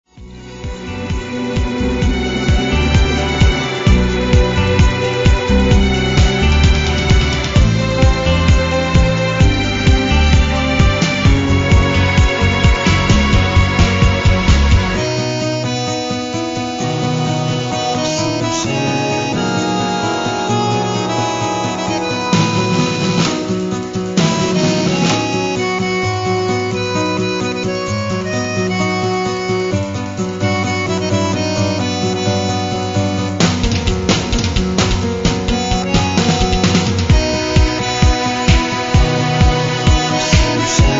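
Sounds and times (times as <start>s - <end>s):
tango music: 0.1s - 40.9s.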